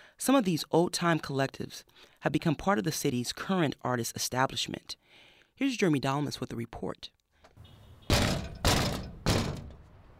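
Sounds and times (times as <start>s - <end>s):
speech: 0.2s - 5.0s, 5.6s - 7.2s
stomping on a metal sidewalk plate on Valencia Street: 8.0s - 9.8s.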